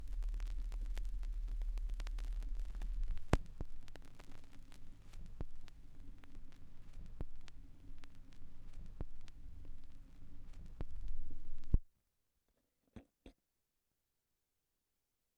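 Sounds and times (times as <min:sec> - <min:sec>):
vinyl record noise: 0:00.0 - 0:11.8.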